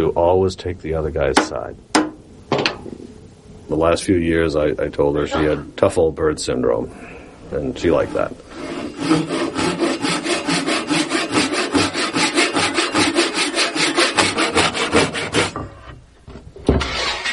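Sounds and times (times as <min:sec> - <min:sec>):
speech: 0:00.0 - 0:01.9, 0:03.7 - 0:09.4
Japanese pull saw cutting wood: 0:08.0 - 0:15.9, 0:16.7 - 0:17.3.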